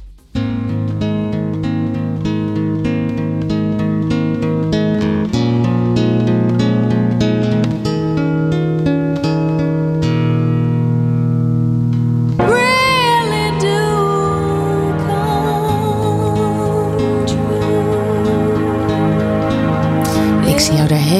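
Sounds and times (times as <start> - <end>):
plucked guitar chords: 0.0 - 21.1
woman singing with vibrato: 12.4 - 19.4, 20.0 - 21.1.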